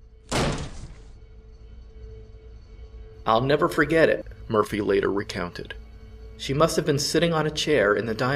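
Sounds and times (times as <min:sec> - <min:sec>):
door of the Bland home being battered in: 0:00.3 - 0:01.2
speech: 0:03.2 - 0:05.8, 0:06.4 - 0:08.3.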